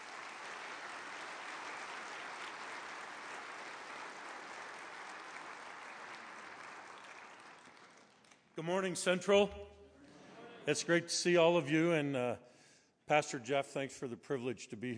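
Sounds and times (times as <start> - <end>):
crowd clapping at a church gathering welcoming a speaker to the podium: 0.0 - 8.9
speech: 8.6 - 9.6, 10.6 - 14.9.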